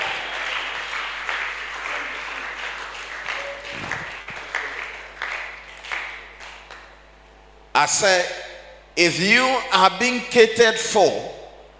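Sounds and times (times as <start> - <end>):
audience clapping: 0.0 - 7.0
speech: 7.8 - 8.4, 9.0 - 11.4.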